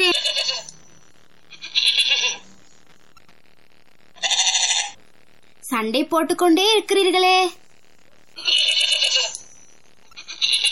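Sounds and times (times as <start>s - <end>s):
sheep bleating: 1.5s - 2.4s, 4.2s - 5.0s, 8.4s - 9.4s, 10.2s - 10.6s
speech: 5.8s - 7.6s.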